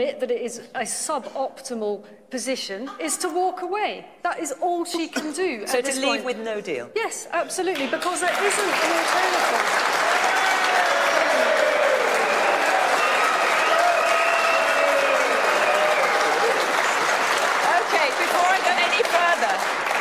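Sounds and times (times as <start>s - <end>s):
speech: 0.0s - 10.2s
audience cheering and applauding: 7.8s - 20.0s.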